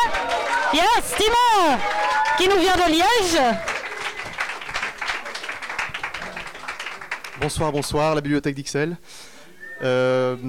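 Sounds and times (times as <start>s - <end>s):
audience applause: 0.0s - 8.1s
speech: 0.7s - 3.7s, 7.4s - 9.2s, 9.8s - 10.4s.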